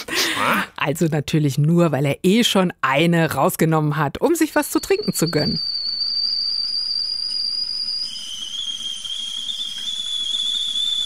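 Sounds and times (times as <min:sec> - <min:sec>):
speech: 0:00.4 - 0:05.8
kettle whistling as water boils: 0:04.3 - 0:11.0.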